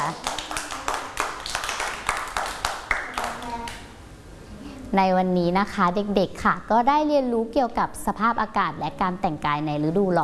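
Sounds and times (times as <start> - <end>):
children clapping hands: 0.0 - 3.9
speech: 4.9 - 10.2.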